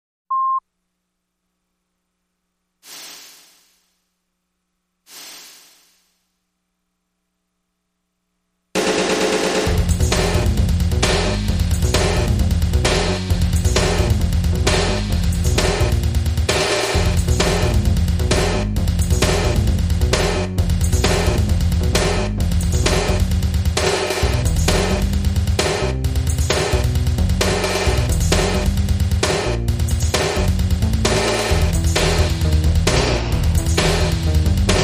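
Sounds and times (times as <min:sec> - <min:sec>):
drums: 0:02.8 - 0:04.0, 0:05.1 - 0:06.2, 0:08.8 - 0:34.8
bass: 0:09.6 - 0:34.8.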